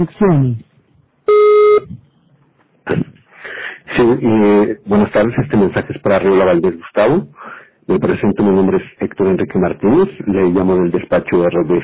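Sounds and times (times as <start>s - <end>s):
speech: 0.0s - 0.7s, 1.3s - 2.0s, 2.9s - 3.1s, 4.0s - 11.8s
voicemail system recording beep: 1.3s - 2.0s.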